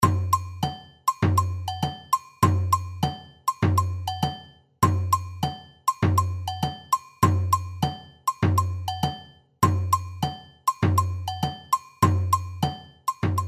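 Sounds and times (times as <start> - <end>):
agogo bells: 0.0 - 13.4
surdo drum: 0.0 - 13.4.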